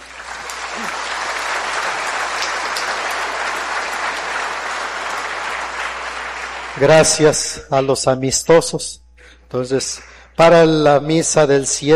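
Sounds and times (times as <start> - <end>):
audience applauding: 0.0 - 7.3
speech: 6.8 - 11.9.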